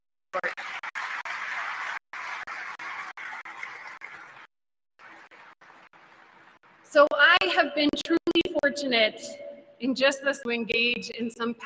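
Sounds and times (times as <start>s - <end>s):
speech: 0.4s - 0.8s, 6.9s - 11.6s
audience applause: 0.4s - 6.4s.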